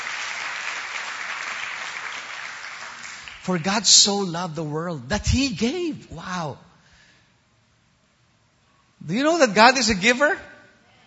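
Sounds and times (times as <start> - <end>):
congregation applauding at a religious gathering: 0.0 - 4.0
speech: 3.4 - 6.7, 9.0 - 10.5.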